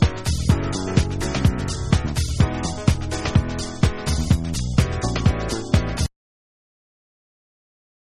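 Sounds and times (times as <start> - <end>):
Yoruba instrumental music: 0.0 - 6.1.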